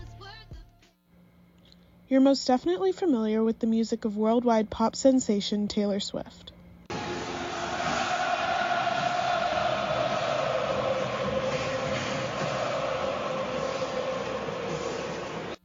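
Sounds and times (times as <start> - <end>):
speech: 2.1 - 6.4
cheering crowd at a football stadium: 6.9 - 15.6.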